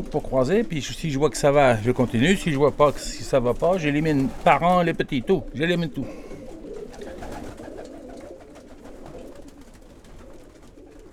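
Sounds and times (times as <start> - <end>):
speech: 0.0 - 6.2
pigeons cooing: 0.0 - 11.1.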